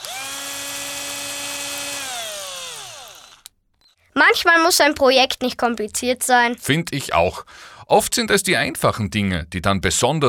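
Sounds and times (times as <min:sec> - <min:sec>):
cordless drill driving screws through fender washers: 0:00.0 - 0:04.0
speech: 0:04.2 - 0:10.2.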